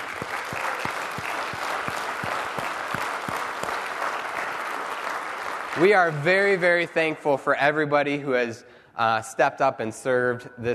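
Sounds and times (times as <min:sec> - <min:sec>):
round of applause: 0:00.0 - 0:07.4
speech: 0:05.8 - 0:10.7.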